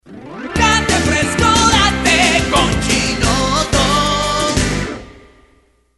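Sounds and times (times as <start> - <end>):
rock music: 0.0 - 5.4.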